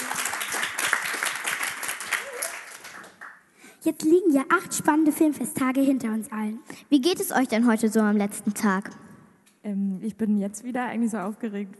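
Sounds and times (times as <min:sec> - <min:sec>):
audience applause: 0:00.0 - 0:03.4
speech: 0:03.8 - 0:11.7.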